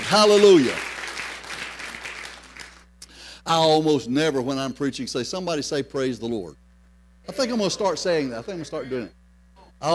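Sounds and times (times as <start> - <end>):
audience clapping hands: 0.0 - 2.9
speech: 0.1 - 0.8, 3.5 - 6.6, 7.2 - 9.2, 9.8 - 9.9.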